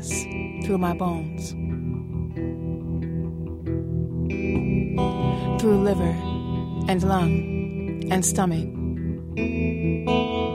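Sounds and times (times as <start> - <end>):
Dan Electro electric guitar through vintage Fender amp: 0.0 - 10.5
speech: 0.7 - 2.7, 4.5 - 6.3, 6.9 - 8.8, 9.4 - 10.4.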